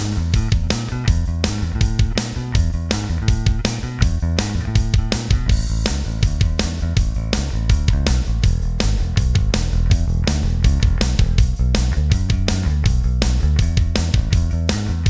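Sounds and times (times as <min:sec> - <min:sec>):
guitar backing track playback: 0:00.0 - 0:15.0.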